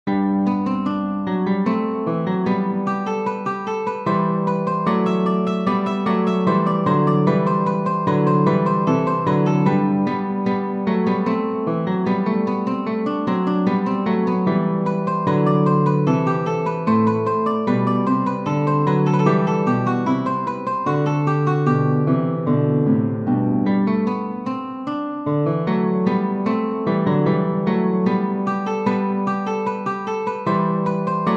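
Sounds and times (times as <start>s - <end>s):
guitar playing a variation: 0.0s - 31.3s
mandolin playing a variation: 0.1s - 31.3s.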